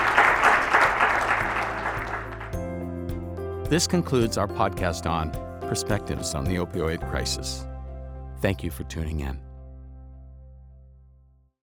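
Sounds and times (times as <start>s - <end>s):
audience applause: 0.0s - 2.6s
speech: 3.7s - 7.7s, 8.4s - 9.4s.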